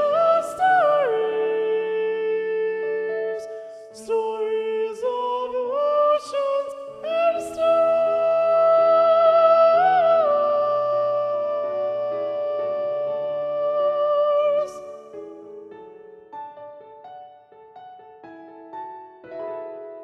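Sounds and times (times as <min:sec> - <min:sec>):
SATB choir with predominant soprano: 0:00.0 - 0:15.6.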